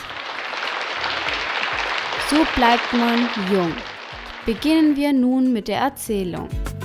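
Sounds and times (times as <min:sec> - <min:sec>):
applause: 0:00.0 - 0:05.0
speech: 0:02.3 - 0:06.6.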